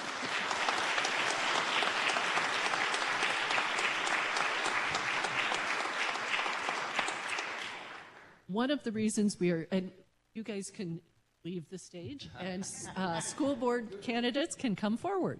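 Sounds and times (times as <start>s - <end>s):
audience applause for candidates: 0.0s - 8.3s
speech: 8.5s - 15.3s.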